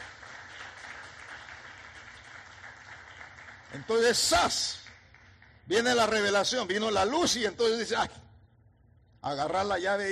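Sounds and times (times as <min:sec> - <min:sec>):
audience clapping: 0:00.0 - 0:06.4
speech: 0:03.7 - 0:04.8, 0:05.7 - 0:08.2, 0:09.2 - 0:10.1.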